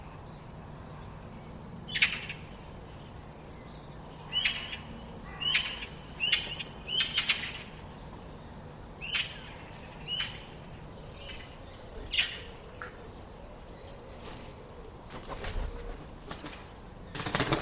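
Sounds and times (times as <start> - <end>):
low steady hiss: 0.0 - 17.5
bird raspy calls: 1.9 - 3.2, 3.8 - 15.0.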